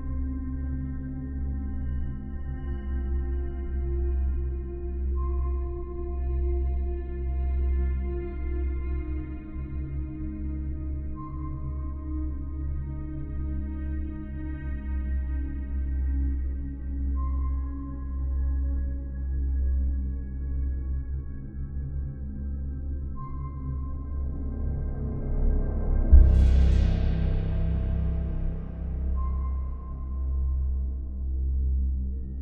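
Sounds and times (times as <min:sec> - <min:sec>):
sci-fi ambient music: 0:00.0 - 0:32.4.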